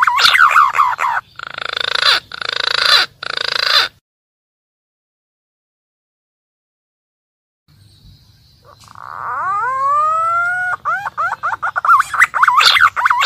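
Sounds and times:
green pigeon calling, used as a lure for wild birds: 0.0s - 4.0s, 8.6s - 13.2s.

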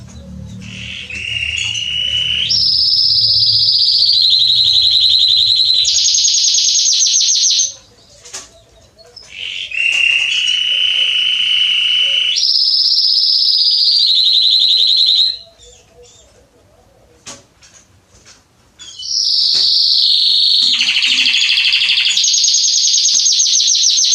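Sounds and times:
canary rolling trills: 0.0s - 16.9s, 18.9s - 24.1s.

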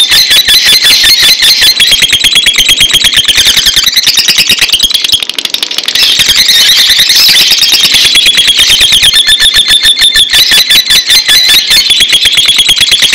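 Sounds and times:
bird whistled song: 0.0s - 12.7s.

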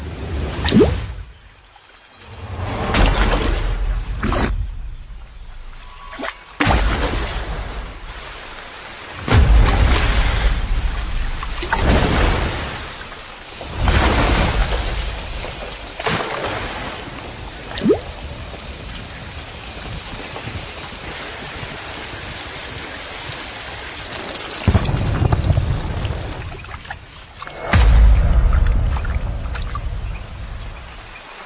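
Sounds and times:
heavy rain downpour from a violent tropical storm: 0.0s - 31.4s
deep rumbling bursts: 2.3s - 8.6s, 9.2s - 16.0s, 24.7s - 31.4s.

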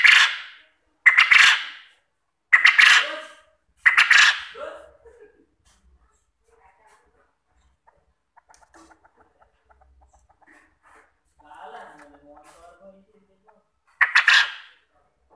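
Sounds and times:
quail calling with soft chirps and loud harsh bursts as a lure: 0.0s - 4.6s, 7.6s - 12.7s, 13.4s - 14.9s.

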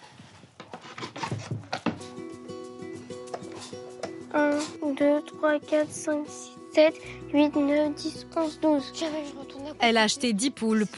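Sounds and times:
wooden henhouse door scraping: 0.6s - 2.0s
speech: 4.4s - 10.9s.

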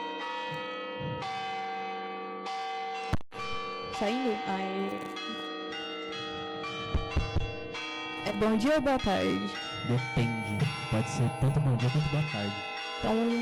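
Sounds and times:
church bells ringing: 0.0s - 13.3s
speech: 4.0s - 5.4s, 8.3s - 13.3s.

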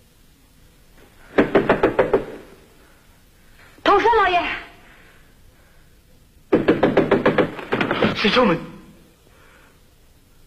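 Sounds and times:
knocking on a door: 1.3s - 2.4s, 6.5s - 8.2s
speech: 8.2s - 8.8s.

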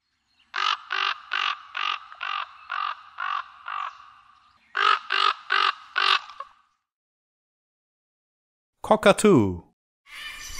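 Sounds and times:
raven croaking: 0.5s - 6.6s
speech: 8.9s - 10.2s.

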